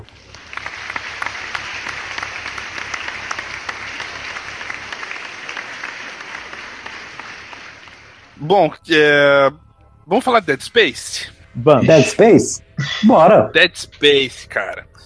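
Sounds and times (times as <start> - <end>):
applause from a small group: 0.0 - 8.4
speech: 8.4 - 15.0.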